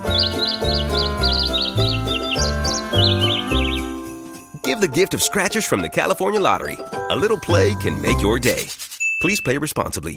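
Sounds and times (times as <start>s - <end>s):
bird singing a tune: 0.0s - 4.3s
speech: 4.8s - 10.1s.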